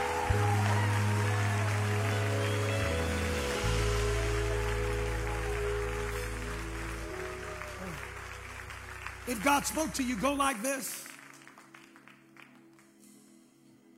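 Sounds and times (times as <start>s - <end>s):
sustained low keyboard or organ chords: 0.0s - 10.4s
audience clapping: 0.0s - 13.1s
speech: 9.3s - 11.0s.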